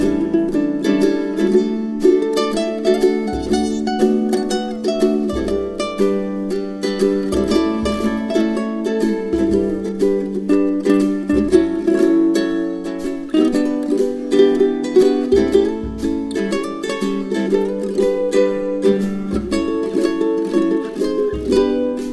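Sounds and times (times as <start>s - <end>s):
relaxing summer beach ukulele background music: 0.0s - 22.1s.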